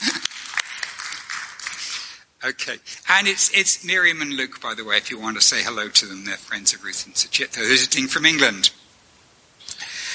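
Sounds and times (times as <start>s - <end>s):
audience applause: 0.0s - 2.2s
speech: 2.4s - 8.8s.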